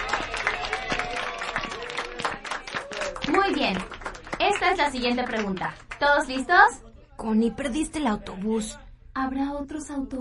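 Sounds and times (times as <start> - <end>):
audience applause: 0.0 - 6.6
speech: 3.4 - 10.1.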